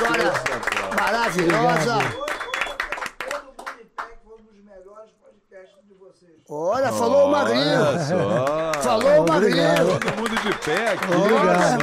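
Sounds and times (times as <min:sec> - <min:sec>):
applause clapping: 0:00.0 - 0:04.2, 0:08.3 - 0:11.8
speech: 0:00.6 - 0:02.2, 0:06.2 - 0:11.8
laughter: 0:06.9 - 0:11.8.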